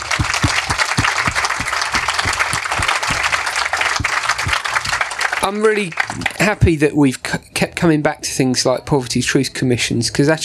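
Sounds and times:
audience clapping: 0.0 - 6.8
speech: 5.5 - 10.4.

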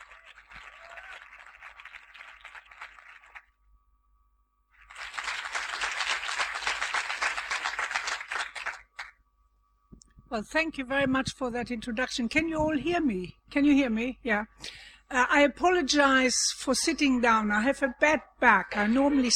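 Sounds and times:
audience at the Greenbelt festival applauding to welcome a professor: 0.0 - 3.5, 4.8 - 9.1
speech: 10.3 - 19.3.

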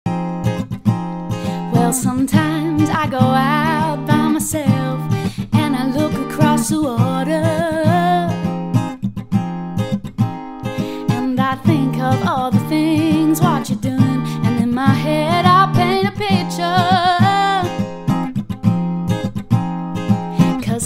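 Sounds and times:
acoustic music: 0.1 - 20.8.

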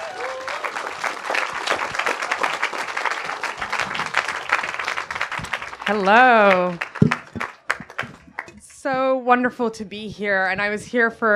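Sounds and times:
crowd applause: 0.0 - 8.7
speech: 5.9 - 6.9, 8.8 - 11.3.

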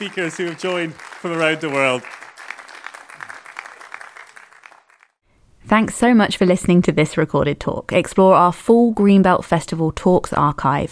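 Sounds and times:
speech: 0.0 - 2.2, 5.7 - 10.8
crowd applause: 0.0 - 5.2.

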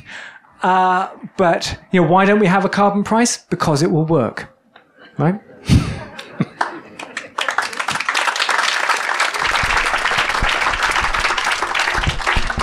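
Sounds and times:
speech: 0.6 - 4.5, 5.2 - 5.5
laughter: 5.0 - 8.2
audience applause: 6.6 - 12.6.

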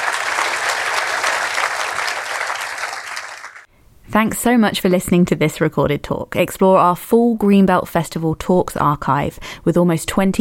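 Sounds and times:
audience applause: 0.0 - 3.7
speech: 4.1 - 10.3.

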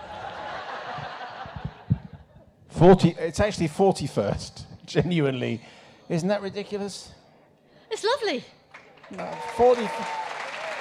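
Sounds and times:
laughter: 0.0 - 2.4
speech: 2.8 - 7.2, 7.9 - 10.2
audience applause: 8.8 - 10.8.

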